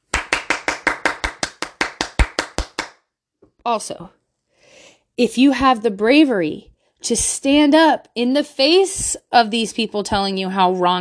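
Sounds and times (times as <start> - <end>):
crowd round of applause with hand clapping: 0.0 - 2.9
speech: 3.6 - 4.2, 5.2 - 10.9.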